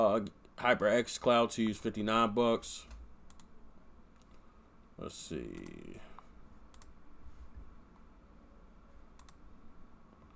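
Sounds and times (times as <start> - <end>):
speech: 0.0 - 3.0, 5.0 - 6.1
low steady hum: 0.0 - 10.3
computer mouse clicks: 2.9 - 3.5, 6.7 - 7.0, 9.1 - 9.4.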